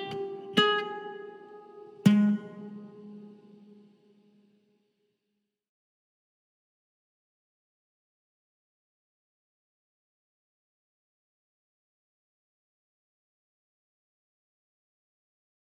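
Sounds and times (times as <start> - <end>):
mellow ukulele: 0.0 - 4.2.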